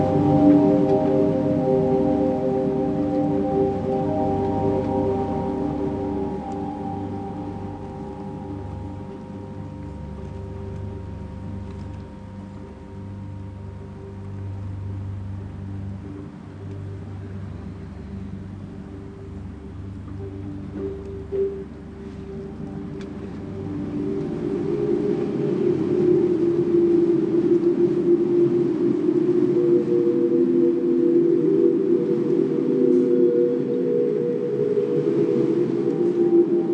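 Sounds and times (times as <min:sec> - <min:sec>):
sirens: 0:00.0 - 0:14.1, 0:22.5 - 0:36.7.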